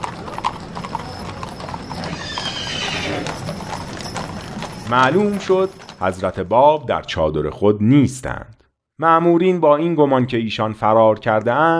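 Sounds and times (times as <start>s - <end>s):
horses' hooves galloping as mounted officers ride around a night camp: 0.0s - 7.2s
horse whinnying: 0.4s - 6.0s
speech: 4.9s - 11.7s.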